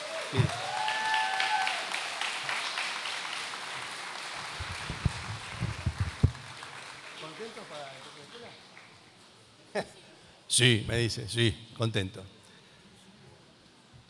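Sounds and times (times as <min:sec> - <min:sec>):
audience applause: 0:00.0 - 0:08.9
speech: 0:00.3 - 0:00.7, 0:10.6 - 0:12.4.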